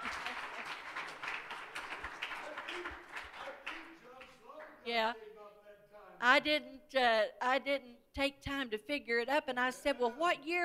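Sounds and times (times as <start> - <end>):
audience clapping: 0.0 - 4.8
speech: 4.9 - 5.3, 6.2 - 10.6.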